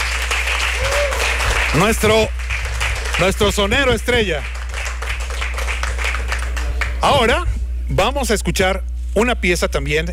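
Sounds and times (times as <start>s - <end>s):
crowd applauding: 0.0s - 7.1s
speech: 1.7s - 2.6s, 3.2s - 4.6s, 7.0s - 10.1s.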